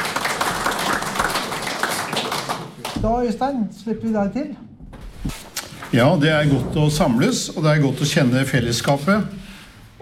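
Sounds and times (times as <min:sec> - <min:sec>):
applause for a musician who accompanied a community choir: 0:00.0 - 0:03.0
speech: 0:03.0 - 0:10.0.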